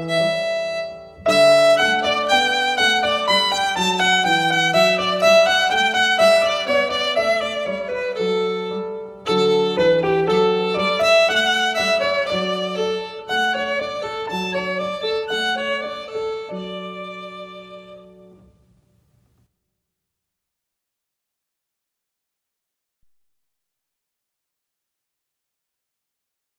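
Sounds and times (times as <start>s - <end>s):
violin musette: 0.0s - 18.7s.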